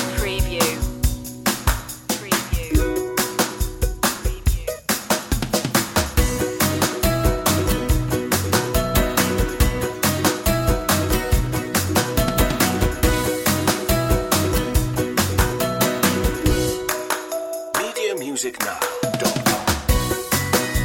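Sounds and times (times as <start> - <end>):
simple music loop: 0.2 - 5.4, 6.2 - 20.7.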